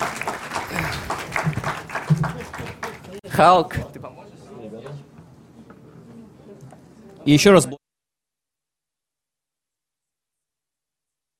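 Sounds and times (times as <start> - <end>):
audience applause: 0.0 - 3.3
speech: 3.4 - 3.9, 7.2 - 7.8.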